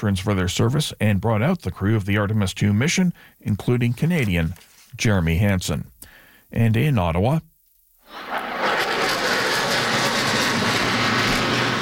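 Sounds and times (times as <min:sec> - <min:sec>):
speech: 0:00.0 - 0:05.9, 0:06.5 - 0:07.5
CF-18 Hornets and F-35 Lightning II warplanes flypast: 0:08.1 - 0:11.7.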